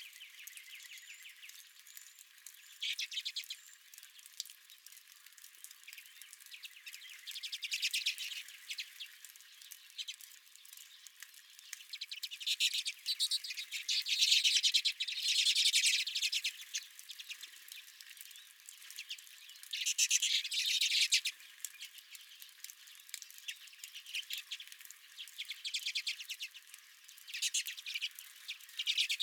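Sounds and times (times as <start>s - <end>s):
redpolls chattering: 0.1s - 29.2s.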